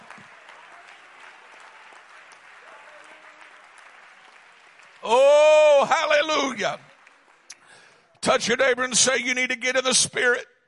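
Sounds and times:
people clapping hands: 0:00.0 - 0:08.6
speech: 0:05.0 - 0:06.9, 0:08.3 - 0:10.5.

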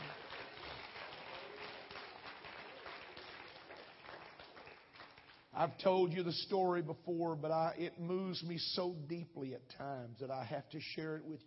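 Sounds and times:
audience clapping hands: 0:00.0 - 0:05.8
speech: 0:05.6 - 0:11.4.

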